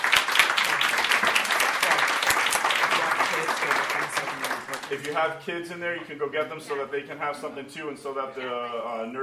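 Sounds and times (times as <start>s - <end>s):
audience clapping: 0.0s - 5.3s
speech: 4.9s - 9.2s.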